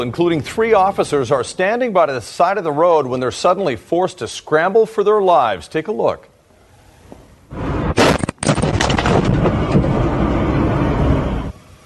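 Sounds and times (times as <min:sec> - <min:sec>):
speech: 0:00.0 - 0:06.3
drunk driver sideswiping patrol car: 0:07.9 - 0:10.6
vehicle engine roaring: 0:08.8 - 0:11.8.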